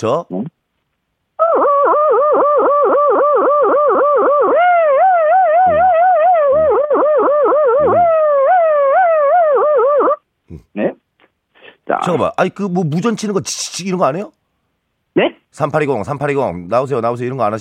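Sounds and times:
speech: 0.0 - 0.5, 2.6 - 4.7, 6.8 - 8.2, 9.6 - 11.0, 11.9 - 14.4, 15.2 - 17.5
person vocally imitating a police siren: 1.4 - 10.2.

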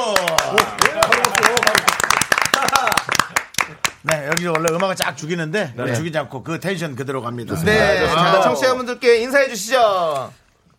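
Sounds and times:
small group clapping: 0.0 - 5.2
speech: 0.1 - 0.8, 4.3 - 10.4.

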